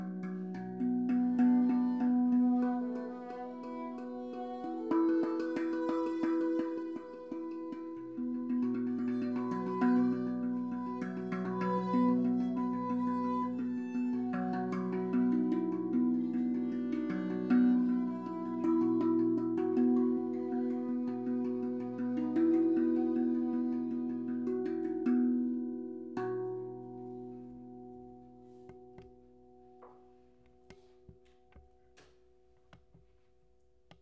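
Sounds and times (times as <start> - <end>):
violin: 0.0 - 25.5.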